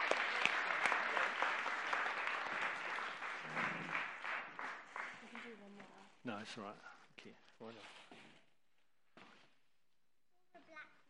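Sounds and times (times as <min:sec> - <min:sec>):
audience applause: 0:00.0 - 0:05.6
speech: 0:06.4 - 0:08.0.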